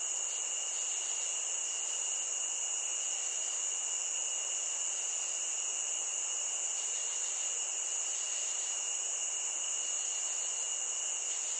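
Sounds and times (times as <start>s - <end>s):
many crickets chirping together in a high pulsing trill: 0.0s - 11.5s.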